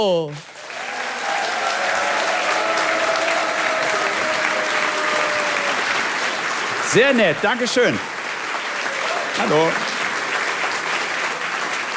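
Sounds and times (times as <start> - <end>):
speech: 0.0 - 0.5, 6.9 - 8.1, 9.4 - 9.9
large audience applause: 0.0 - 11.9
faint cheers: 0.6 - 6.0, 8.8 - 9.7.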